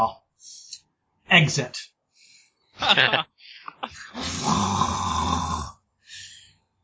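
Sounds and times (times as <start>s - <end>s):
speech: 0.0s - 0.6s, 1.3s - 1.9s, 2.8s - 5.4s
laughter: 2.8s - 4.3s
person vocally imitating a grunt or gas escaping: 4.1s - 5.7s.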